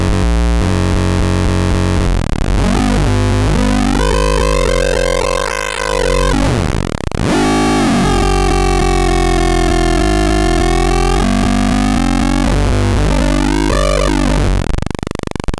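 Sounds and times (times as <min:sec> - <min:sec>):
2-step sound block: 0:00.2 - 0:15.5.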